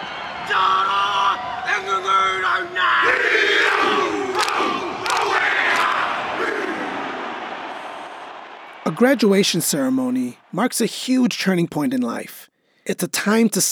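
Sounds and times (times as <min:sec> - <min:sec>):
haka war dance chanting: 0:00.0 - 0:09.6
speech: 0:09.0 - 0:13.6.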